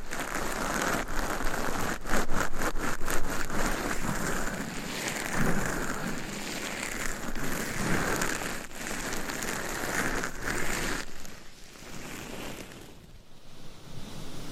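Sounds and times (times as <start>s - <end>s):
massage rubbing: 0.0s - 13.1s
scratchy rustle: 0.0s - 13.2s.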